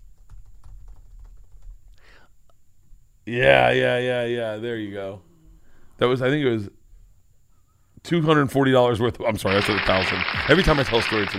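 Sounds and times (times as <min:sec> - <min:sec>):
typing on a computer keyboard: 0:00.0 - 0:01.8
speech: 0:03.3 - 0:05.3, 0:06.0 - 0:06.8, 0:08.0 - 0:11.3.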